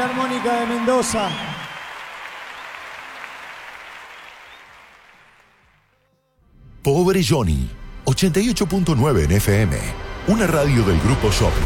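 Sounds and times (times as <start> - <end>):
speech: 0.0 - 1.5, 6.8 - 11.6
audience applause: 0.0 - 5.9.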